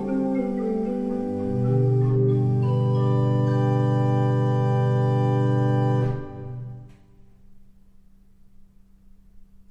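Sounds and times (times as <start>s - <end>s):
pipe organ: 0.0s - 7.0s.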